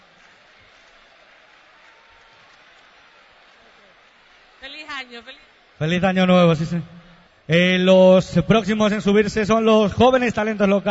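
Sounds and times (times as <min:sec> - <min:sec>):
crowd applause: 0:00.0 - 0:07.6
speech: 0:04.6 - 0:10.9.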